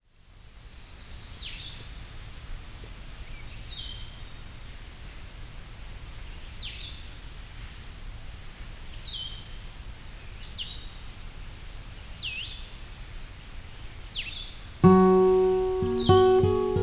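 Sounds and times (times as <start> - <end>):
Blue-headed Vireo singing: 14.2 - 16.8.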